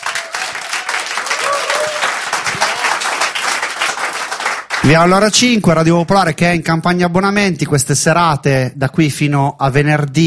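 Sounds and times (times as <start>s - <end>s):
audience applause: 0.0s - 4.9s
speech: 4.9s - 10.2s.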